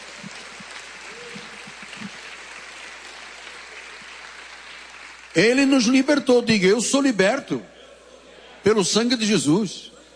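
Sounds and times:
audience applauding: 0.0s - 6.2s
speech: 5.4s - 7.7s, 8.6s - 9.9s.

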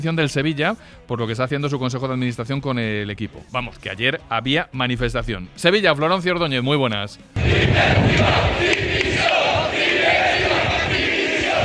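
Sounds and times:
speech: 0.0s - 8.7s
protesting football fans chanting: 7.4s - 11.6s.

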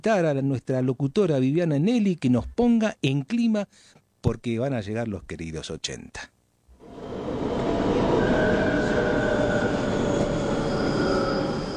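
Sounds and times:
speech: 0.0s - 6.4s
train pulling into a station: 6.8s - 11.7s
train wheel squeals: 6.8s - 11.7s.

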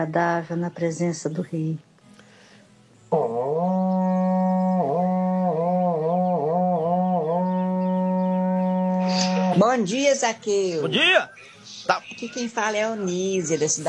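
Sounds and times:
speech: 0.0s - 1.9s, 9.8s - 13.8s
berrante cattle horn being blown: 3.1s - 9.8s.

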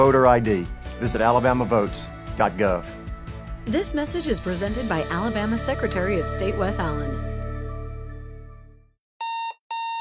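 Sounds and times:
speech: 0.0s - 3.0s, 3.6s - 7.3s
alarm clock ringing: 9.2s - 10.0s.

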